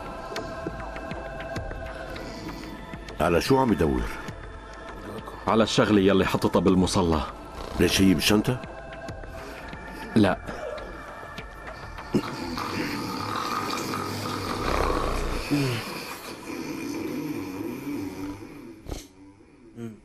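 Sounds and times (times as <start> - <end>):
speech: 3.2 - 4.2, 5.5 - 8.7
man snoring loudly while asleep: 7.4 - 8.2, 11.9 - 20.0.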